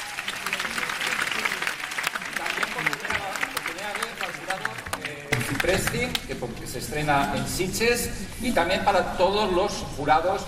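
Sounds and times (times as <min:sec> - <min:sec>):
audience applause for the jury: 0:00.0 - 0:06.2
speech: 0:05.6 - 0:10.4.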